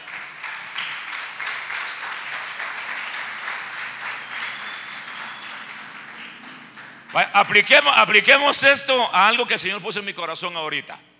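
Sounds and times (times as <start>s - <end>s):
audience applauding: 0.0s - 7.9s
speech: 7.1s - 11.1s.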